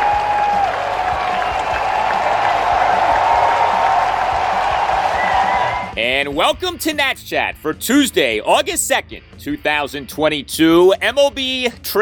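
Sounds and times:
Washington Nationals fans applauding and cheering at a baseball game against the Mets: 0.0s - 6.0s
speech: 6.2s - 12.0s.

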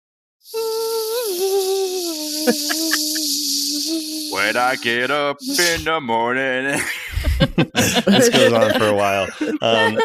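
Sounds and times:
speech: 0.4s - 0.7s, 2.5s - 2.9s, 4.3s - 10.0s
kazoo buzzing a sustained note: 0.4s - 5.9s
laughter: 2.5s - 3.2s, 6.7s - 10.0s.

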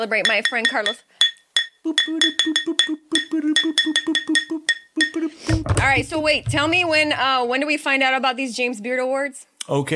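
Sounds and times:
speech: 0.0s - 1.2s, 1.8s - 9.9s
banging a cooking pot: 5.5s - 7.3s.

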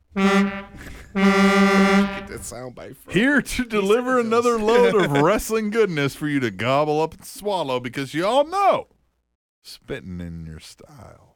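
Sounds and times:
truck air horn: 0.0s - 2.4s
laughter: 0.8s - 1.2s, 3.1s - 5.8s
speech: 0.8s - 1.4s, 2.4s - 9.0s, 9.6s - 11.3s.

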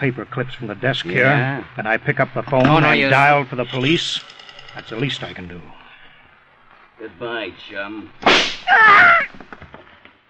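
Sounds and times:
speech: 0.0s - 5.8s, 7.0s - 9.8s
gunshot fired at a man during an indoor confrontation: 8.2s - 8.7s.

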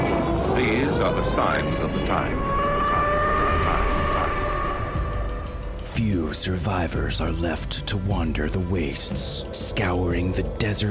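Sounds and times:
air raid warning siren: 0.0s - 5.7s
speech: 0.6s - 2.6s, 6.0s - 10.9s.

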